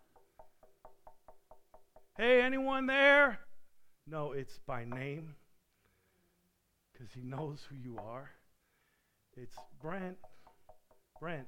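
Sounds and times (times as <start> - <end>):
knocking on a door: 0.0 - 2.2, 9.6 - 11.4
speech: 2.2 - 3.4, 4.1 - 5.4, 7.0 - 8.4, 9.4 - 10.3, 11.2 - 11.4.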